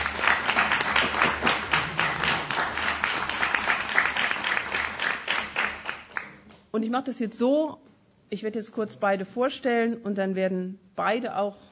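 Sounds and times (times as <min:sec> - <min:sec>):
audience applause: 0:00.0 - 0:06.4
speech: 0:06.8 - 0:11.7.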